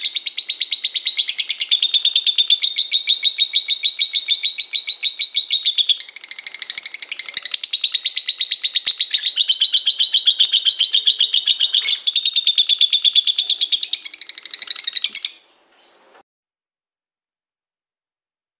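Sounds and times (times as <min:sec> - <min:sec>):
bird singing a fast high-pitched chattering song: 0:00.0 - 0:16.2.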